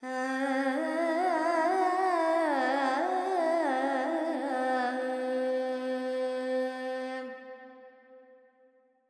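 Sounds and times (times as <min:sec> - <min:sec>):
Carnatic female alap in raga Panthuvarali with reverb: 0:00.0 - 0:07.3.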